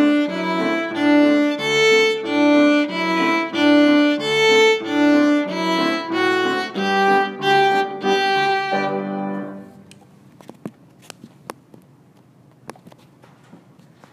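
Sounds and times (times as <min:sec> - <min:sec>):
two-step march played on piano: 0:00.0 - 0:09.7.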